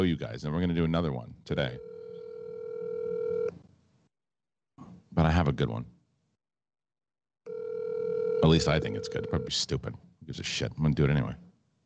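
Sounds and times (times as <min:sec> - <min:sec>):
speech: 0:00.0 - 0:01.9, 0:05.2 - 0:06.0, 0:08.4 - 0:11.5
telephone dial tone ahead of a prank call: 0:01.8 - 0:03.5, 0:07.5 - 0:09.5.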